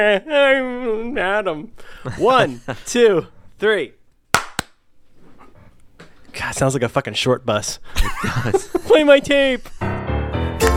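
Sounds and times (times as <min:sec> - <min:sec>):
speech: 0:00.0 - 0:04.0, 0:06.4 - 0:09.8
hand clap for recording sync: 0:04.3 - 0:04.8
laughter: 0:07.9 - 0:09.9.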